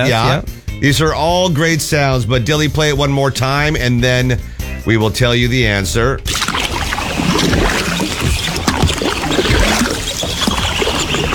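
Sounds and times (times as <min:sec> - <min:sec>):
speech: 0:00.0 - 0:06.4
canoe paddle strokes in water: 0:06.3 - 0:11.3.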